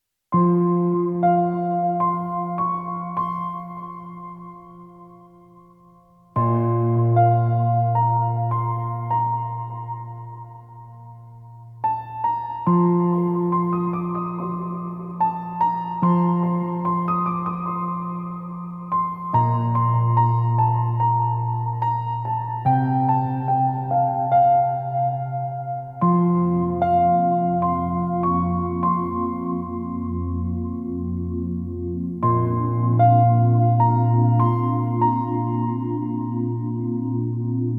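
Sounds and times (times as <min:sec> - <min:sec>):
piano theme: 0:00.3 - 0:37.7.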